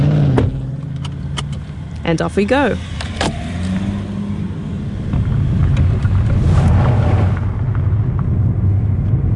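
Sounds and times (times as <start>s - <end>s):
car driving along a highway through green farmland near Gore: 0.0s - 9.3s
speech: 2.1s - 3.0s
buffeting wind noise: 2.4s - 9.3s.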